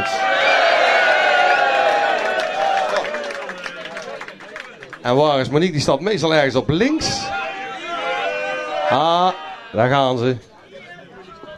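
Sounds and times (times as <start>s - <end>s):
audience applause: 0.0s - 5.2s
speech: 5.0s - 7.3s, 8.9s - 10.5s.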